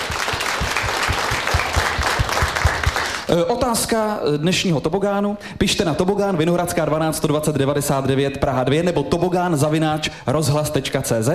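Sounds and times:
audience applause: 0.0s - 3.3s
speech: 3.3s - 11.3s.

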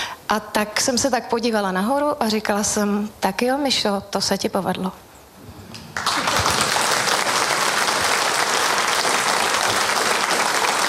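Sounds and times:
speech: 0.3s - 5.1s
audience applause: 5.9s - 10.8s.

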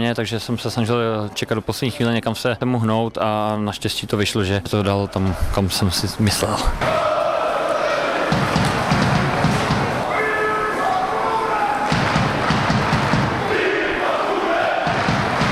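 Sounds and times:
speech: 0.0s - 7.1s
football fans chanting players' names: 6.7s - 15.4s.

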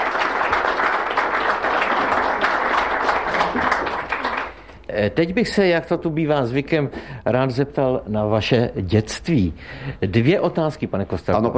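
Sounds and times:
crowd applause: 0.0s - 4.7s
speech: 5.0s - 11.5s.

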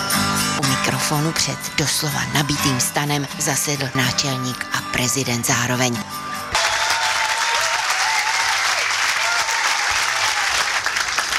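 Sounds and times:
speech: 1.1s - 6.3s
audience applause in a tent: 6.5s - 11.3s.

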